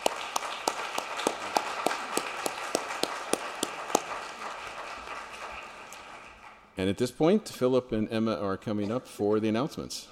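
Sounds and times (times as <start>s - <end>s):
audience applause: 0.0s - 6.8s
speech: 6.8s - 10.1s.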